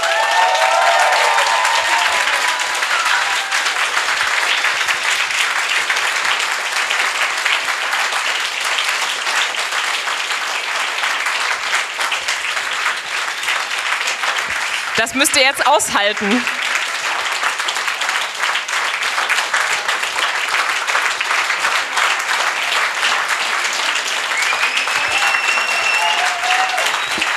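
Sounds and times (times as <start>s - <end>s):
faint voices or cheers: 0.0s - 4.1s, 24.3s - 27.3s
audience applause: 0.0s - 27.3s
speech: 15.1s - 16.6s.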